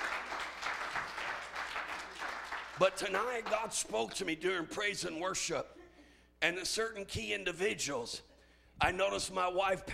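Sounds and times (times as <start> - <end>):
church congregation clapping in praise: 0.0 - 4.1
speech: 2.8 - 5.8, 6.4 - 9.9.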